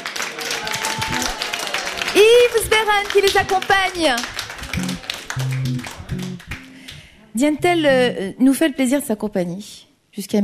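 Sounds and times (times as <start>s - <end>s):
audience applause: 0.0s - 6.9s
speech: 2.6s - 4.4s, 7.4s - 10.4s.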